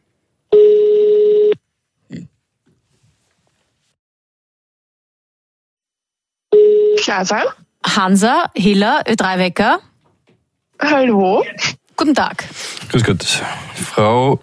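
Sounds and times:
telephone ringing on the line: 0.5s - 1.6s, 6.5s - 7.1s
speech: 7.1s - 9.9s, 10.8s - 14.4s.

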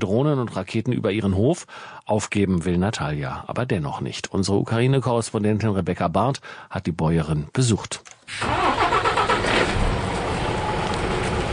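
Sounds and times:
speech: 0.0s - 8.8s
milk tanker truck driving away from a farm in the Kharkiv region: 8.4s - 11.5s.

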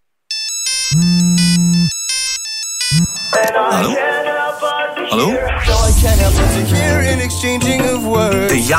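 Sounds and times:
telephone ringing on an outgoing call: 0.3s - 4.1s
speech: 5.2s - 8.7s.

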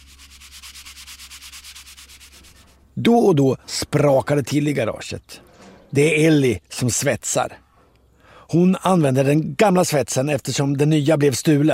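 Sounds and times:
sanding down body filler in a garage: 0.0s - 2.8s
speech: 3.0s - 7.6s, 8.5s - 11.7s.

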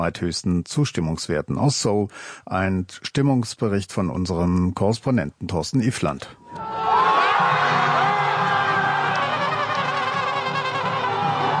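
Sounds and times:
speech: 0.0s - 6.7s
crowd cheering and jubilating: 6.5s - 11.5s.

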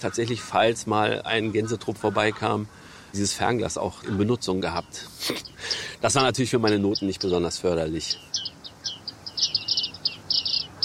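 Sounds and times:
speech: 0.0s - 8.5s
bearded reedlings calling: 0.0s - 10.8s
faint low hiss: 0.0s - 10.8s.

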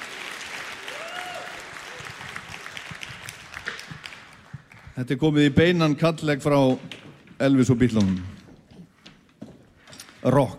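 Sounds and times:
audience applause at a band competition concert: 0.0s - 5.1s
speech: 5.0s - 8.4s, 10.2s - 10.5s.

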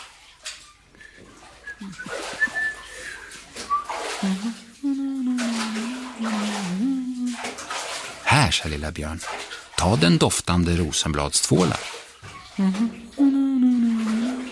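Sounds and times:
bath water splashing as someone is bathed: 0.0s - 14.5s
person humming: 1.8s - 2.2s, 4.2s - 7.4s, 12.6s - 14.5s
speech: 1.8s - 2.2s, 4.2s - 5.0s, 8.5s - 12.0s, 12.6s - 13.0s.

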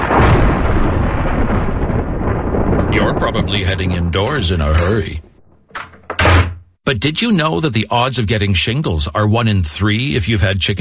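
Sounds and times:
thunder rumbling: 0.0s - 6.5s
speech: 3.3s - 5.3s, 6.9s - 10.7s.

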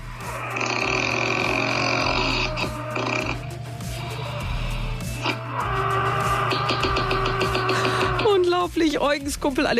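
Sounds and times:
loud snoring: 0.0s - 7.8s
speech: 8.9s - 9.7s.

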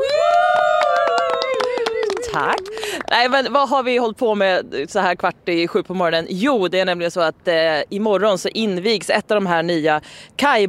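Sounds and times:
small group cheering: 0.0s - 3.0s
small group clapping: 0.0s - 3.3s
speech: 2.3s - 10.6s.

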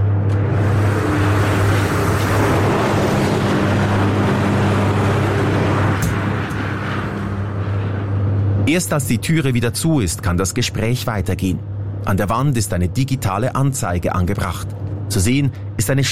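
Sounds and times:
deep electrical hum: 0.0s - 16.1s
electric arc furnace arc burning on scrap: 0.3s - 8.4s
speech: 8.7s - 16.1s.

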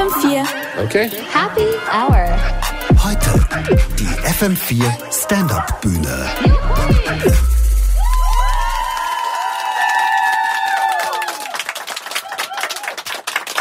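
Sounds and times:
speech: 0.0s - 7.5s
studio audience at the FM4 stand-up stage whooping and cheering: 6.5s - 13.5s
scattered clapping: 8.0s - 13.5s.

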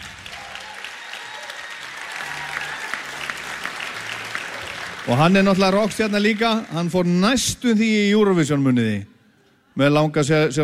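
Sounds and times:
audience applause in a hall honouring the sound engineer: 0.0s - 7.5s
speech: 5.0s - 9.1s, 9.8s - 10.6s.

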